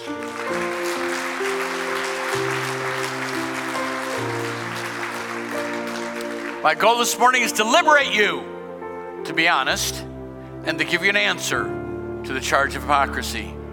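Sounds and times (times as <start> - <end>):
audience clapping hands: 0.0 - 7.6
sustained organ chords: 0.0 - 13.7
speech: 6.6 - 8.5, 9.3 - 13.6.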